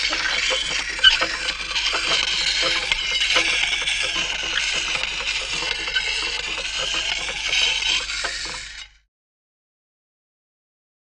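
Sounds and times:
hand-operated grinding wheel grinding: 0.0 - 8.9.

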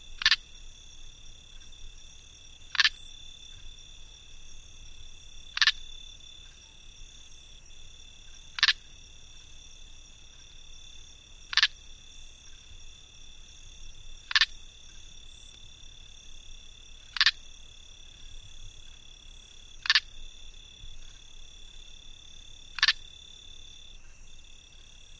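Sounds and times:
cricket clicking close: 0.0 - 0.7, 2.6 - 3.8, 4.9 - 6.7, 7.6 - 9.6, 10.3 - 13.0, 13.8 - 15.9, 16.7 - 25.0.

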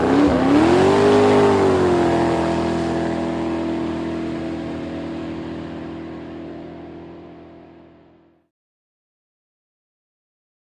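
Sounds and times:
drag boat engine starting and revving: 0.0 - 8.4.

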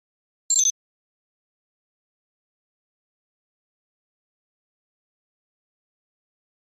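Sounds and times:
electronic flash beep: 0.5 - 0.7.

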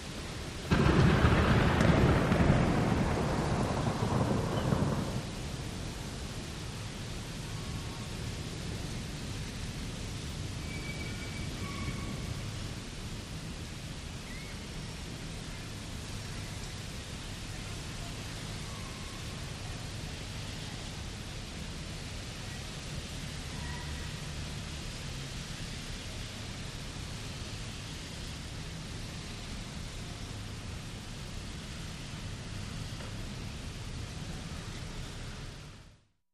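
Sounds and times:
wet city traffic: 0.0 - 36.0
heavy rain in a city storm: 0.0 - 36.1
thunder: 0.6 - 6.2.

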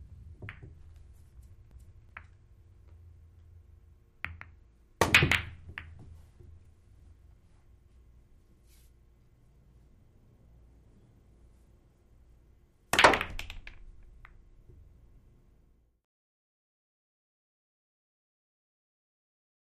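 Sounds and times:
billiard balls clacking in a pool game: 0.2 - 3.0, 4.2 - 6.7, 13.0 - 14.9.

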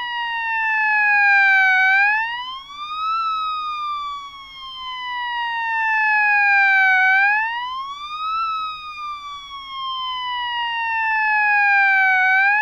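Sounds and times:
static fire engine siren: 0.0 - 12.5.

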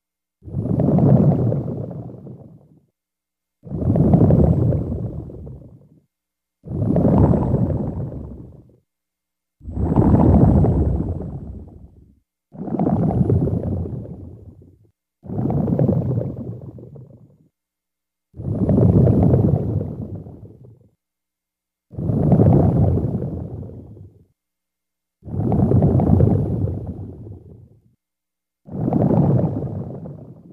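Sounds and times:
bubbles underwater: 0.4 - 2.8, 3.6 - 6.0, 6.6 - 8.8, 9.6 - 17.5, 18.4 - 20.8, 21.9 - 24.1, 25.2 - 27.6, 28.7 - 30.5.

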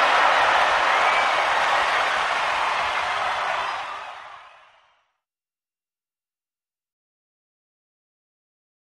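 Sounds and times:
huge football crowd: 0.0 - 5.1.

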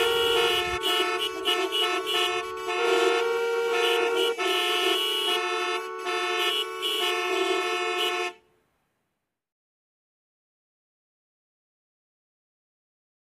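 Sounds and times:
many car horns honking: 0.0 - 8.5.

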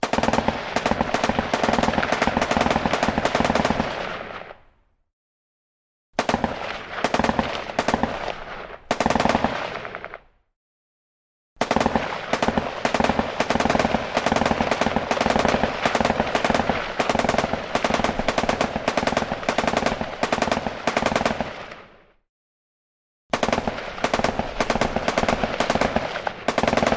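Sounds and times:
M-60 machine gun sporadic firing: 0.0 - 4.5, 6.2 - 10.2, 11.6 - 21.8, 23.3 - 26.9.

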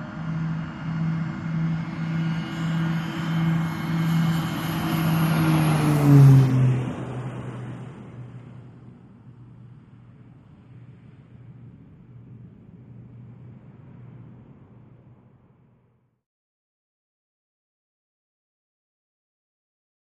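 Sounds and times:
C-130 Hercules propeller airplane taking off: 0.0 - 15.6.

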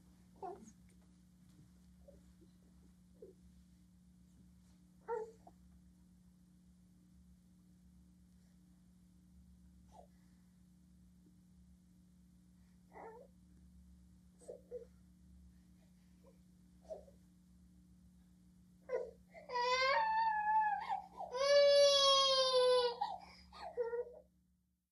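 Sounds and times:
twelve-month-old baby girl crying in bath: 19.0 - 24.1.

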